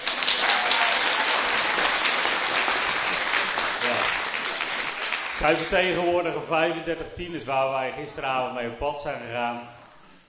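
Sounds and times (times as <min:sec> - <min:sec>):
audience applause: 0:00.0 - 0:06.2
speech: 0:05.4 - 0:09.8.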